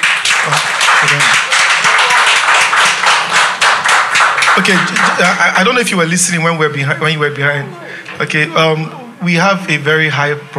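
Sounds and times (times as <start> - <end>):
audience clapping: 0.0 - 6.4
speech: 4.6 - 10.5.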